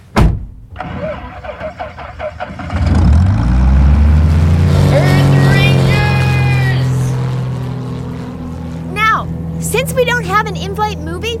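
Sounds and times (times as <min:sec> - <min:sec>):
sharp thump: 0:00.1 - 0:00.7
small propeller engine starting up: 0:00.7 - 0:11.3.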